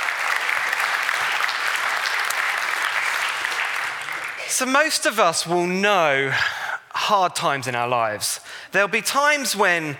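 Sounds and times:
audience applause: 0.0 - 4.5
speech: 4.6 - 9.9.

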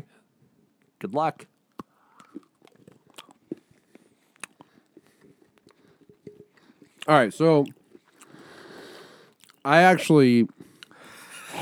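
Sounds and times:
speech: 1.0 - 1.5, 7.1 - 7.8, 9.6 - 10.6
biting and chewing a chicken-flavored snack: 1.7 - 9.6.

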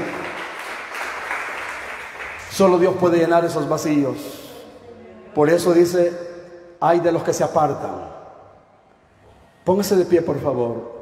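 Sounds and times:
crowd clapping: 0.0 - 3.2
speech: 2.5 - 4.4, 5.3 - 8.1, 9.6 - 11.0.

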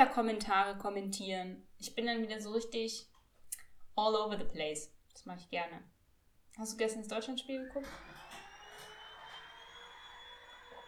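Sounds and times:
speech: 0.0 - 3.1, 4.0 - 5.9, 6.6 - 8.2
vacuum cleaner running in another room: 7.5 - 10.8.

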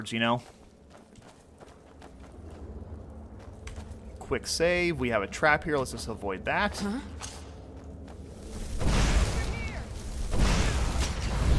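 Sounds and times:
speech: 0.0 - 0.6, 4.3 - 7.3
video game oil well igniting with roaring flames: 8.4 - 11.5.

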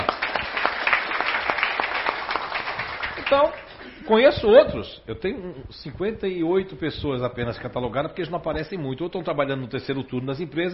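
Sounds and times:
applause from a small group: 0.0 - 3.8
speech: 3.3 - 10.7.

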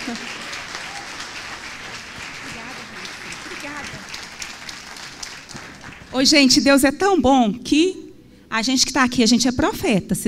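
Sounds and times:
audience applause: 0.0 - 6.4
speech: 0.1 - 0.4, 6.2 - 10.2.

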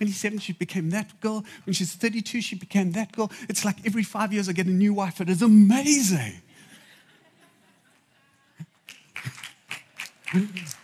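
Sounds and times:
speech: 0.0 - 6.5, 10.3 - 10.8
single person clapping: 8.8 - 10.8.

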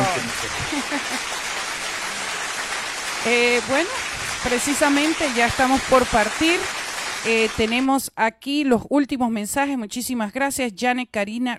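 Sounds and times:
laughter: 0.0 - 1.5
applause: 0.0 - 8.0
speech: 3.2 - 11.5.

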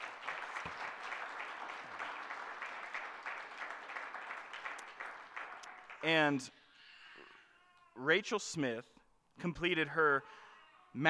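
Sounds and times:
audience applause: 0.0 - 6.2
speech: 6.0 - 6.6, 8.0 - 11.0.

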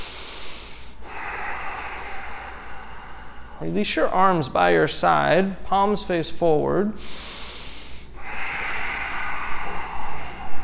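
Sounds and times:
powerful in-and-out breathing through the nose during a yoga exercise: 0.0 - 3.6, 7.0 - 10.6
speech: 3.6 - 7.3.

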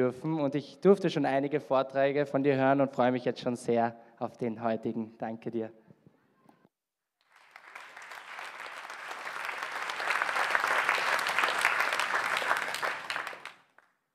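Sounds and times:
speech: 0.0 - 5.8
audience applause: 7.2 - 13.9.

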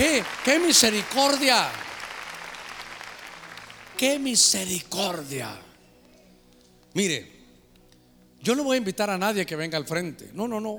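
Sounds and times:
speech: 0.0 - 1.9, 4.0 - 5.7, 6.9 - 7.3, 8.4 - 10.7
audience clapping hands: 0.0 - 5.4.

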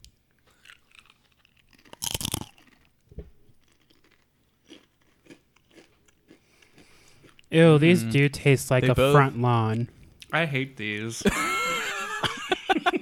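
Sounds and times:
crunching on a pumpkin seed tortilla chip: 0.4 - 6.8
speech: 7.5 - 11.5
laughter: 11.1 - 13.0.

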